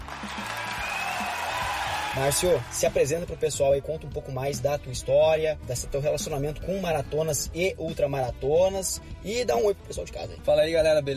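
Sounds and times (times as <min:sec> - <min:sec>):
crowd clapping: 0:00.0 - 0:03.2
speech: 0:00.2 - 0:00.6, 0:02.1 - 0:11.1.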